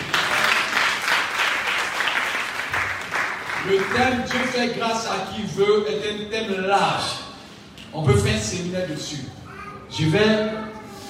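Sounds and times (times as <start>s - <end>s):
congregation applauding during a church service: 0.0s - 4.8s
speech: 3.6s - 7.2s, 7.9s - 10.7s.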